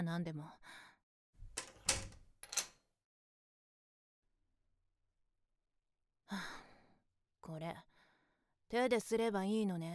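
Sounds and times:
speech: 0.0s - 0.9s, 6.3s - 6.6s, 7.4s - 7.9s, 8.7s - 9.9s
front door being pushed shut: 1.4s - 2.7s
front door lock turning: 1.4s - 2.8s.

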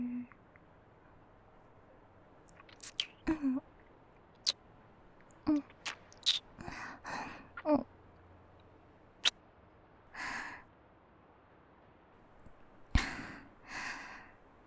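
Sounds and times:
kissing: 2.5s - 3.6s, 5.2s - 7.9s, 10.2s - 10.6s, 12.4s - 14.4s.

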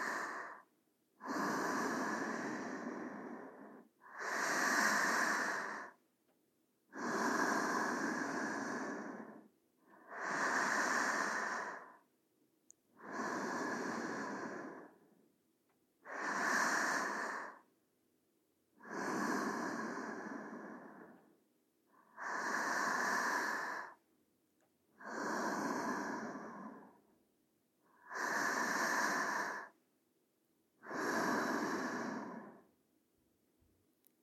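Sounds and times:
sleeping breathing: 0.0s - 6.0s, 6.9s - 12.1s, 12.9s - 15.2s, 16.0s - 17.7s, 18.7s - 24.0s, 24.9s - 27.1s, 27.8s - 29.8s, 30.8s - 32.8s.

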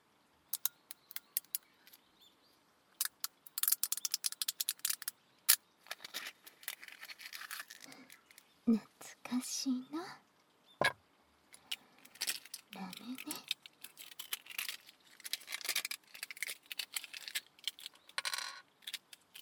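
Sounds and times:
ice cubes squeaking in a glass: 0.6s - 1.6s, 3.0s - 5.1s, 6.0s - 8.4s, 11.6s - 19.4s
speech: 8.7s - 10.2s.

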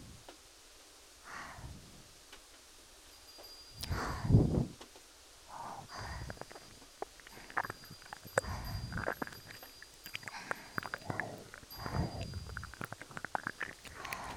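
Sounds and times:
binaural ear licking ASMR: 3.8s - 4.3s, 5.5s - 14.3s.

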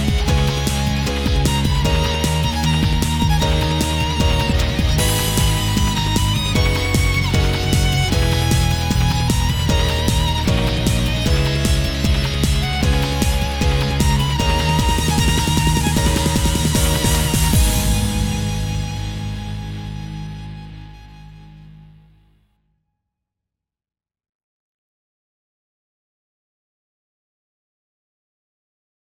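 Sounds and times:
off vocal instrumental music: 0.0s - 22.4s.

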